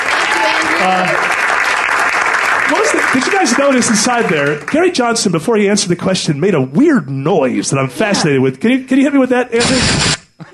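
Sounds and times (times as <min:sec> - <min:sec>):
audience applause: 0:00.0 - 0:05.0
speech: 0:03.2 - 0:10.2.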